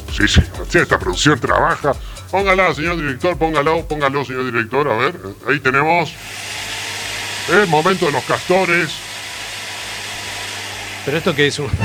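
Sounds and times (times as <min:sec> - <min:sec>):
speech: 0:00.1 - 0:06.4, 0:07.5 - 0:09.1, 0:11.1 - 0:11.8
power drill running: 0:06.1 - 0:11.8.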